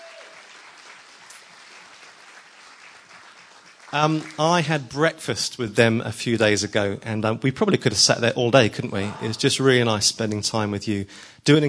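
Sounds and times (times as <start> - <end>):
audience applause: 0.0 - 4.8
speech: 3.9 - 11.6.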